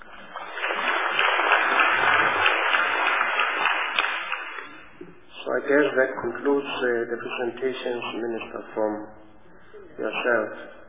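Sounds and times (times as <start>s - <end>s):
audience applause: 0.0s - 5.0s
speech: 5.7s - 9.2s, 10.0s - 10.8s.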